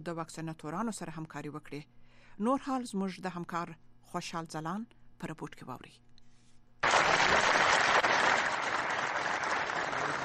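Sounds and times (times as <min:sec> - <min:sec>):
speech: 0:00.0 - 0:06.1
crowd clapping at a large gathering in Farah: 0:06.8 - 0:10.2.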